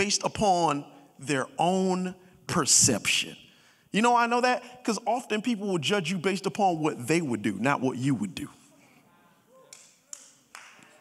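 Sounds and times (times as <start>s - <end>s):
speech: 0.0s - 8.6s
faint half-hearted audience clapping: 9.6s - 10.9s.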